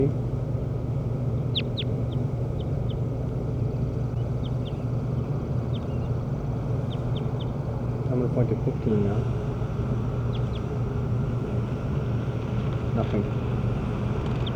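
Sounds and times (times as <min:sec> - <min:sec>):
speech: 0:00.0 - 0:00.3, 0:08.4 - 0:09.4, 0:13.0 - 0:13.4
low rumbling hum: 0:00.0 - 0:14.5
bird chirping in response: 0:01.2 - 0:11.1, 0:14.0 - 0:14.5.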